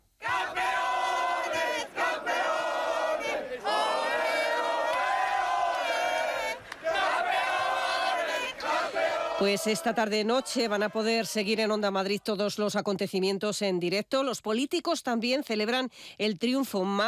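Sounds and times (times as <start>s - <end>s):
large crowd chanting in celebration: 0.2s - 11.8s
speech: 9.4s - 17.0s.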